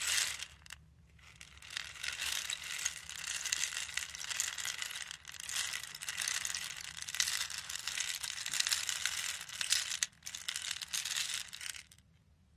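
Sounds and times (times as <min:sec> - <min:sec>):
rain stick: 0:00.0 - 0:00.8, 0:01.4 - 0:11.9.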